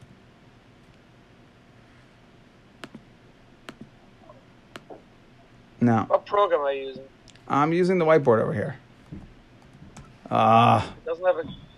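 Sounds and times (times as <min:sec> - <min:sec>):
low steady hiss: 0:00.0 - 0:11.7
computer mouse right-clicks: 0:02.8 - 0:03.0, 0:03.7 - 0:03.9, 0:04.7 - 0:05.0
speech: 0:05.8 - 0:09.3, 0:10.3 - 0:11.6.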